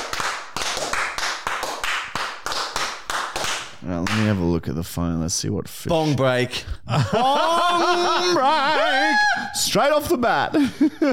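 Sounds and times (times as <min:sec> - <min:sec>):
round of applause: 0:00.0 - 0:04.2
speech: 0:03.9 - 0:11.1
laughter: 0:05.9 - 0:11.1.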